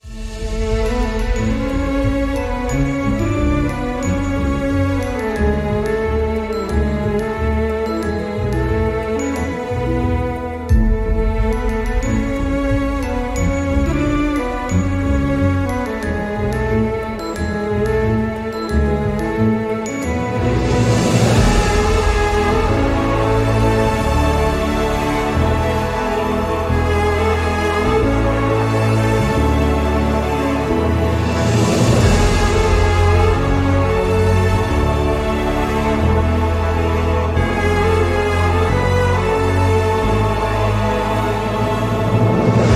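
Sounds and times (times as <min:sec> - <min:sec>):
sad background music: 0:00.0 - 0:42.7.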